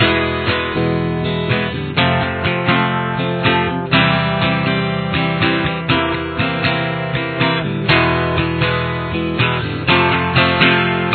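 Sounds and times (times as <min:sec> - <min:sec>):
guitar with chorus effect: 0:00.0 - 0:11.1.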